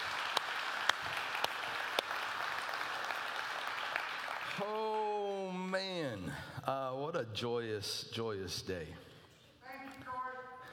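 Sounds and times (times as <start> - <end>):
audience applause: 0.0 - 5.0
speech: 5.8 - 9.1.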